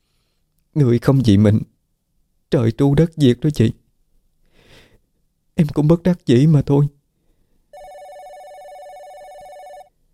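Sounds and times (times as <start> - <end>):
speech: 0.8 - 1.7, 2.5 - 3.8, 5.6 - 7.0
telephone ringing with electronic bell tone: 7.7 - 10.0.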